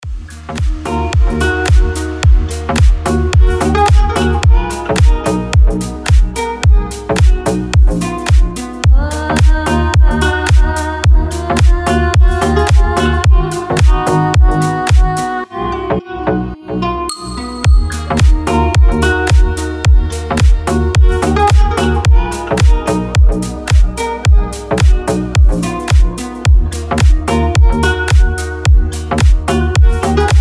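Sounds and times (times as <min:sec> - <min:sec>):
relaxing guitar music: 0:00.3 - 0:15.4, 0:17.2 - 0:30.3.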